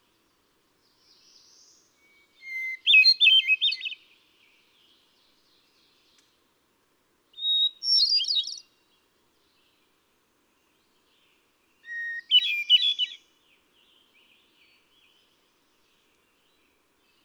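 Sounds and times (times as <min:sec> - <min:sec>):
hermit thrush singing: 0:00.9 - 0:04.1, 0:07.4 - 0:08.7, 0:11.0 - 0:17.2.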